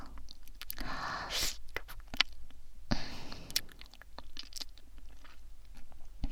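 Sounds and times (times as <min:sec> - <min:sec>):
crunchy eating and chewing of food: 0:00.0 - 0:00.9, 0:01.6 - 0:02.6, 0:03.3 - 0:06.2.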